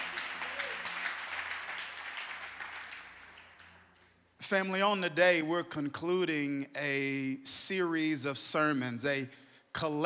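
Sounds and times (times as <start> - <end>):
audience applause: 0.0 - 3.9
speech: 4.5 - 10.0.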